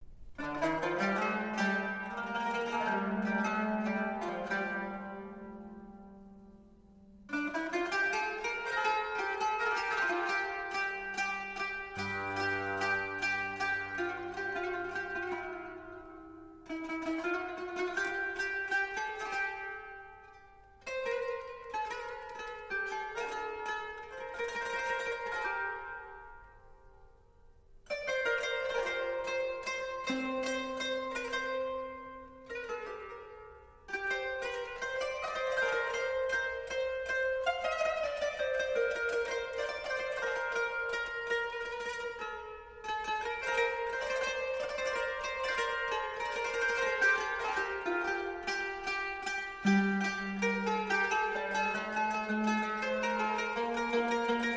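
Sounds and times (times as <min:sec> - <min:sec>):
qanun playing a postlude: 0:00.0 - 0:54.5.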